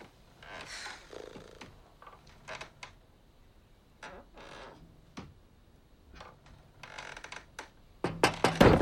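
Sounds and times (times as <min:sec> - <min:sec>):
wooden chair rocking back and forth creaking: 0:00.4 - 0:03.0, 0:04.0 - 0:04.8, 0:06.2 - 0:07.7.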